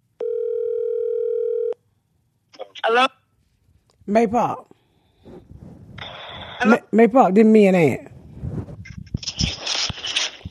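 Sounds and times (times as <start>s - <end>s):
telephone dial tone: 0.2s - 1.8s
speech: 2.8s - 3.2s, 4.1s - 4.8s, 6.6s - 8.1s.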